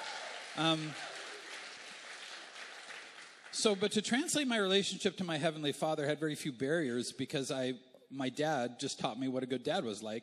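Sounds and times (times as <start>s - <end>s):
audience clapping: 0.0s - 4.8s
speech: 0.6s - 1.1s, 3.6s - 10.2s.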